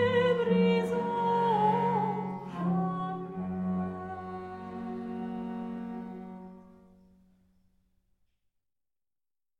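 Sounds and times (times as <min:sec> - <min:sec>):
tender sarabande: 0:00.0 - 0:07.6.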